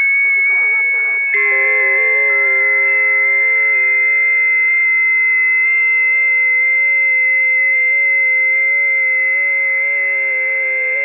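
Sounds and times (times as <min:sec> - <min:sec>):
busy FT8 digital radio signals on the 20m band: 0:00.0 - 0:11.0.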